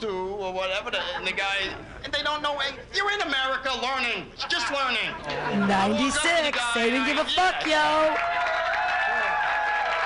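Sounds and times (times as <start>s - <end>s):
speech: 0.0s - 8.3s
audience clapping: 6.3s - 10.0s.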